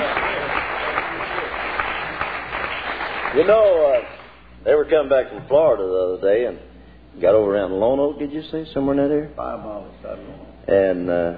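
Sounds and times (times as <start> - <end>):
audience hand clapping applause: 0.0 - 4.3
speech: 3.4 - 11.3.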